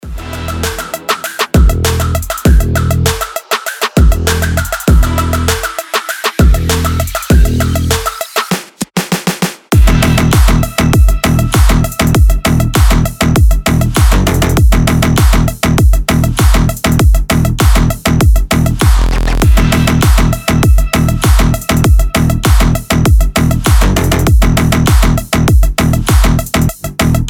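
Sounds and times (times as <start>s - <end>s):
cyber trap music: 0.0s - 8.4s, 9.8s - 27.2s.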